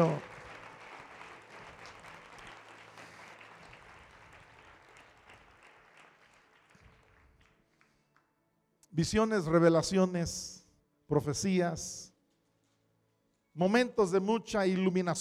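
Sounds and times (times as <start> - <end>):
speech: 0.0 - 0.3, 9.0 - 12.1, 13.6 - 15.1
audience applauding: 0.0 - 8.0.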